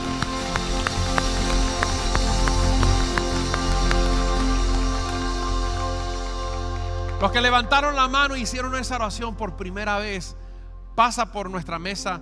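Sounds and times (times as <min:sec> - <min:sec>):
audience applause: 0:00.0 - 0:07.6
speech: 0:07.2 - 0:10.4, 0:11.0 - 0:12.2.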